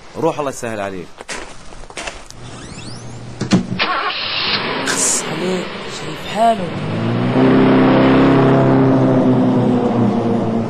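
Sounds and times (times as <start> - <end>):
speech: 0.2 - 1.3, 5.4 - 7.5
car engine revving and pulling away: 2.4 - 10.6.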